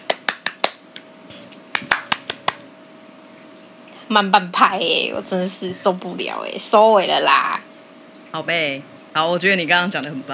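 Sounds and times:
hand clapping: 0.0s - 2.6s
speech: 4.1s - 7.7s, 8.3s - 10.3s.

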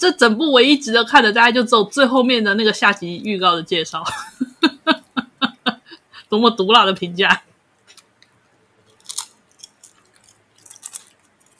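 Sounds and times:
speech: 0.0s - 4.5s, 6.3s - 7.5s
laughter: 4.1s - 6.0s
chewing pork skewers wrapped with scallion and enoki mushrooms: 7.8s - 11.5s.

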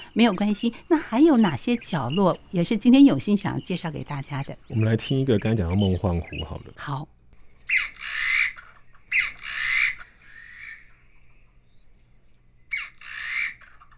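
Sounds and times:
Taiwan bamboo partridge calls: 0.0s - 13.9s
speech: 0.2s - 7.2s.

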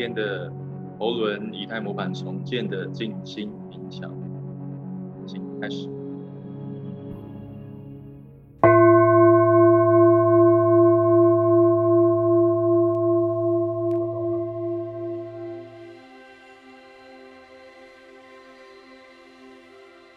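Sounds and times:
speech: 0.0s - 4.3s, 5.3s - 6.0s
healing singing bowl ringing: 8.6s - 16.1s
soft resonant hum: 8.6s - 16.1s.

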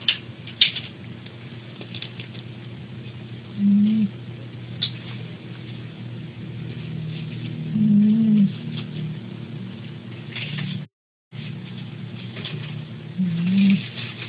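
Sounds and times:
nasal whine: 0.0s - 14.2s
pet snoring: 3.6s - 4.2s, 7.6s - 8.6s, 13.2s - 13.9s.

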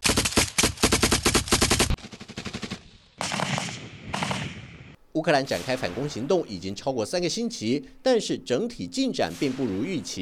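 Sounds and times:
automatic gunfire from Russian troops in a trench: 0.0s - 4.6s
speech: 5.2s - 10.2s.

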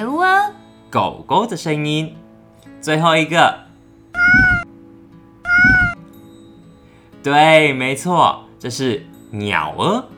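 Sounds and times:
speech: 0.0s - 2.2s, 2.8s - 3.6s, 7.2s - 10.1s
cat meowing: 4.2s - 4.6s, 5.4s - 6.0s.

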